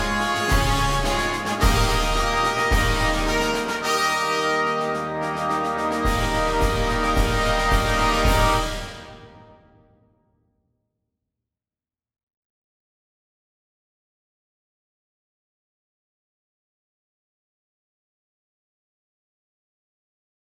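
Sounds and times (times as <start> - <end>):
ceremonial fanfare: 0.0 - 10.0.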